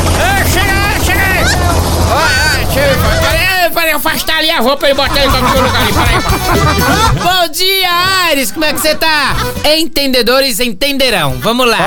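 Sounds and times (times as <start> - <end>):
presidential helicopter flying overhead: 0.0 - 7.2
laughter: 0.2 - 9.8
speech: 4.4 - 11.8.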